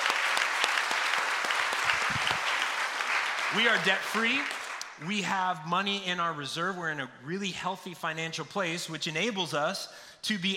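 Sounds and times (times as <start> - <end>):
audience applause: 0.0 - 4.8
speech: 3.5 - 10.5.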